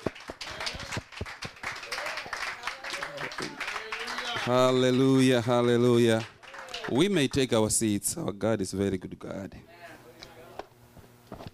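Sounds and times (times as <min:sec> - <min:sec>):
audience clapping hands: 0:00.0 - 0:07.3
speech: 0:04.5 - 0:09.7.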